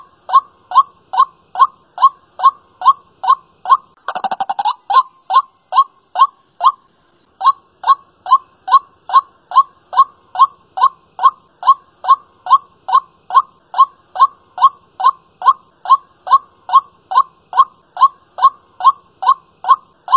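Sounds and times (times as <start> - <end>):
white-breasted waterhen calling: 0.0 - 20.1.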